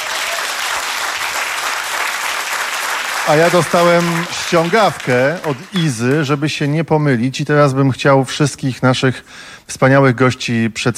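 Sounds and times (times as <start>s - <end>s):
concert audience applause for the band on stage: 0.0s - 6.5s
speech: 3.2s - 10.9s.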